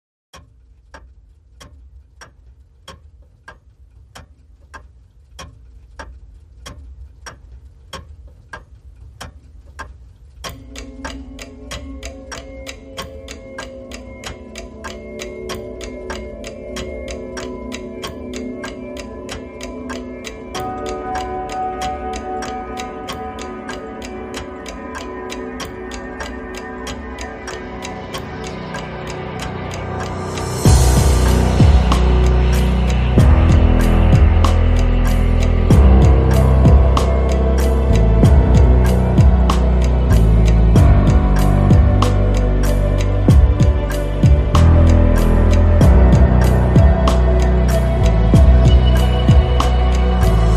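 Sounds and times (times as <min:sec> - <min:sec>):
tense clock ticking: 0:00.3 - 0:50.5.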